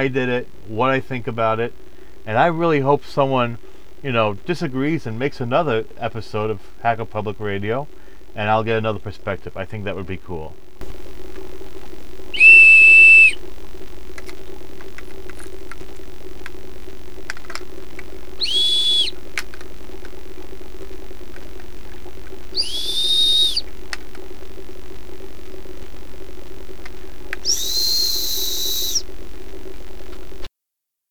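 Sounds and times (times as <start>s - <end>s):
speech: 0.0s - 11.0s
low hum: 0.0s - 30.5s
short high-pitched whistles: 12.3s - 13.4s, 18.4s - 19.2s, 22.6s - 23.7s, 27.4s - 29.0s.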